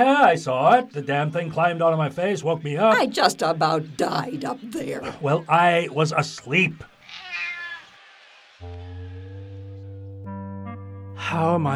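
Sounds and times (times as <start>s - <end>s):
speech: 0.0s - 6.9s, 11.3s - 11.7s
cat meowing and yowling: 7.0s - 8.2s.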